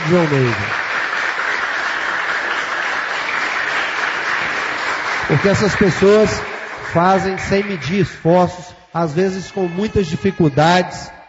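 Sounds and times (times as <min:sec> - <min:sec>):
audience applause: 0:00.0 - 0:08.0
speech: 0:00.1 - 0:00.8, 0:05.3 - 0:11.2.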